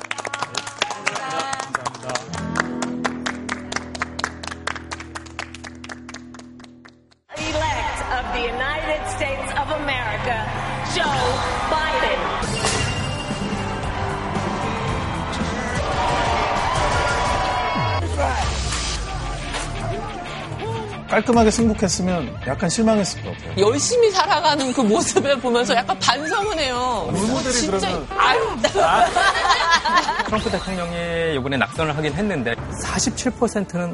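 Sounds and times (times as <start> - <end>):
audience applause: 0.0 - 7.0, 13.4 - 18.0
audience cheering: 7.4 - 20.9
speech: 8.4 - 12.6, 21.1 - 33.9
laughter: 27.8 - 30.6.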